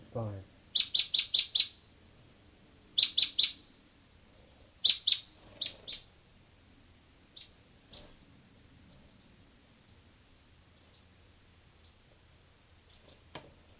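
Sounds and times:
bird calling: 0.7 - 1.9, 3.0 - 3.7, 4.4 - 6.1, 7.4 - 8.2.

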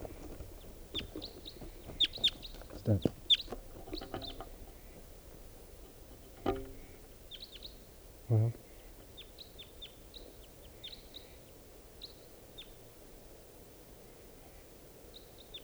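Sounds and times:
wild bird calling: 0.0 - 11.3
speech: 2.9 - 3.2.

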